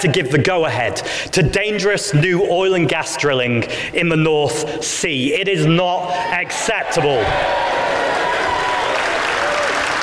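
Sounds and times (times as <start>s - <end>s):
speech: 0.0s - 7.9s
room of people shouting shame: 6.5s - 9.9s.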